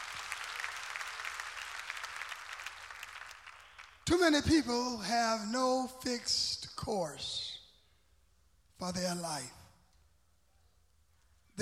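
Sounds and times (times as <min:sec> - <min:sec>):
audience clapping: 0:00.0 - 0:04.0
speech: 0:04.1 - 0:07.5, 0:08.8 - 0:09.6.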